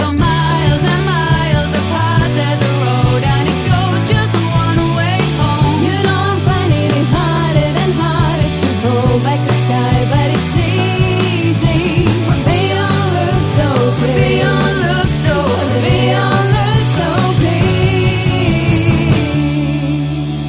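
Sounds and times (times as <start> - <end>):
vocal chorus: 0.2 - 20.4.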